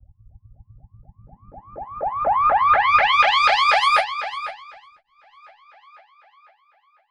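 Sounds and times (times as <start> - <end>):
filtered alarm siren: 1.4 - 7.0.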